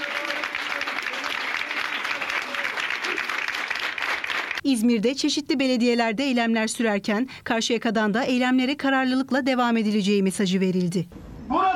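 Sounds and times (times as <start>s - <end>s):
municipal workers in Karşıyaka, İzmir applauding as a protest: 0.0s - 4.6s
speech: 4.6s - 11.2s.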